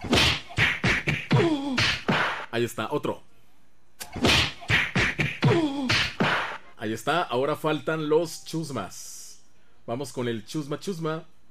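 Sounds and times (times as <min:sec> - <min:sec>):
hard whacks on a big belly: 0:00.0 - 0:02.4, 0:04.0 - 0:06.6
speech: 0:02.6 - 0:03.3, 0:06.8 - 0:09.1, 0:09.8 - 0:11.3.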